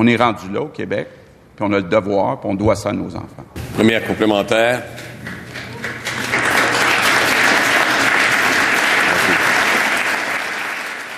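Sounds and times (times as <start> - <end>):
speech: 0.0 - 5.4
spontaneous standing applause in parliament: 3.9 - 11.1.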